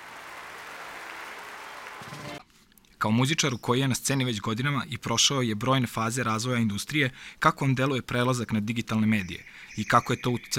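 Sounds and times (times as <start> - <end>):
applause for a bass-guitar-playing musician: 0.0 - 2.4
speech: 3.0 - 10.5.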